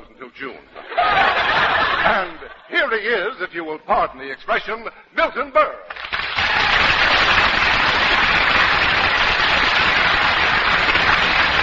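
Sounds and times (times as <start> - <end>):
speech: 0.3 - 1.2, 2.0 - 5.9
laughter: 0.8 - 2.7
large studio audience applause: 5.9 - 11.6.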